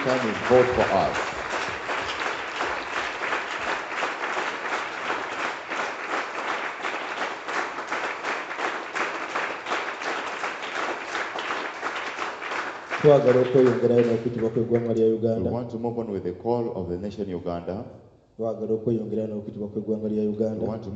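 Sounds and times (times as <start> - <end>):
speech: 0.0 - 1.3, 13.0 - 20.9
audience hand clapping: 0.0 - 15.0.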